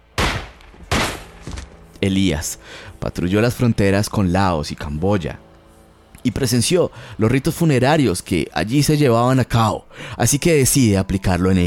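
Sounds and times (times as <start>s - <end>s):
gunshot: 0.2s - 1.6s
speech: 2.0s - 5.5s, 6.2s - 11.6s.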